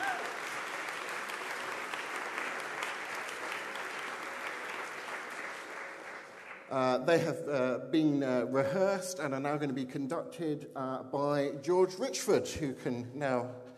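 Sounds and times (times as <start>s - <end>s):
audience applause for choir: 0.0s - 6.8s
speech: 6.7s - 13.6s.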